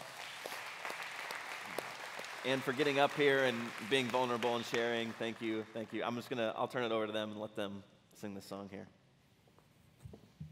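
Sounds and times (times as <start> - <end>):
group of people applauding: 0.0 - 6.0
speech: 2.4 - 9.0.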